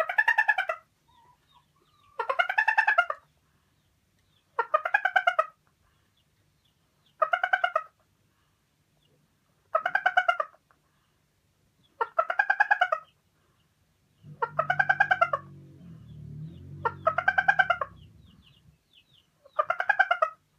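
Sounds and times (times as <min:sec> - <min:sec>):
Araucana hen cackling while laying an egg: 0:00.0 - 0:03.3, 0:04.6 - 0:05.6, 0:07.2 - 0:08.0, 0:09.7 - 0:10.6, 0:12.0 - 0:13.1, 0:14.2 - 0:18.8, 0:19.4 - 0:20.5.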